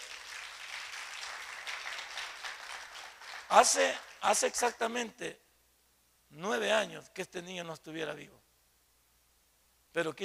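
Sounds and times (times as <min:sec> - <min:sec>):
crowd applauding: 0:00.0 - 0:04.2
speech: 0:03.5 - 0:05.4, 0:06.3 - 0:08.4, 0:10.0 - 0:10.2.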